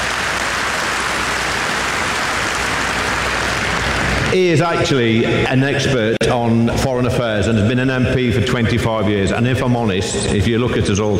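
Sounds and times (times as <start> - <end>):
audience applause: 0.0 - 5.1
speech: 4.4 - 11.1.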